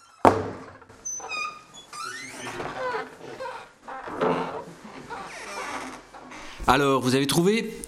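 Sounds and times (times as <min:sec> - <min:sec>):
swinging door to a school refectory squealing and creaking: 0:00.0 - 0:06.7
swinging door to a school refectory thumping: 0:00.2 - 0:00.8
speech: 0:06.7 - 0:07.8.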